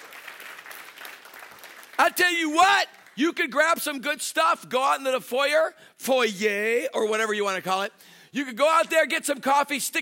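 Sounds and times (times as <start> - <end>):
audience clapping hands: 0.0 - 3.4
speech: 2.1 - 10.0.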